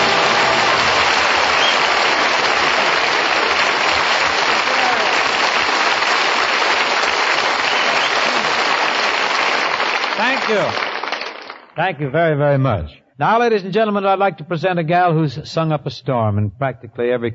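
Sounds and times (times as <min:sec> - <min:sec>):
studio audience applause: 0:00.0 - 0:11.8
speech: 0:11.8 - 0:17.3.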